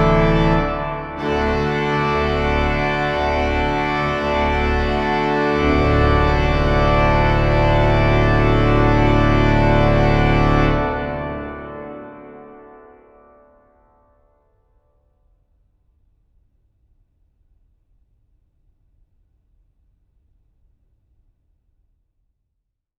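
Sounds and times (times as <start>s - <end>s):
organ fanfare: 0.0s - 13.4s.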